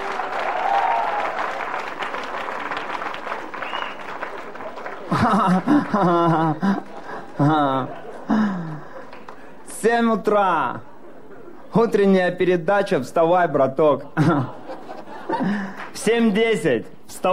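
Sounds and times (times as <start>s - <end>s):
live audience applause: 0.0s - 9.6s
laughter: 3.6s - 9.6s, 10.6s - 12.0s, 13.8s - 16.0s
speech: 5.1s - 6.8s, 7.4s - 8.0s, 9.8s - 10.9s, 11.7s - 14.6s, 15.4s - 17.3s.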